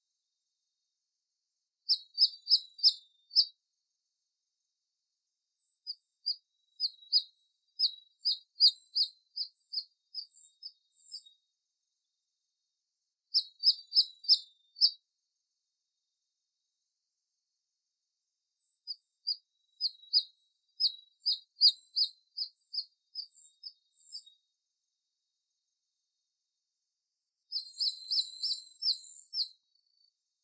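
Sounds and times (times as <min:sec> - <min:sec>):
giant nightjar singing: 0:01.9 - 0:03.5, 0:05.6 - 0:11.4, 0:13.4 - 0:15.0, 0:18.6 - 0:24.4, 0:27.5 - 0:30.1.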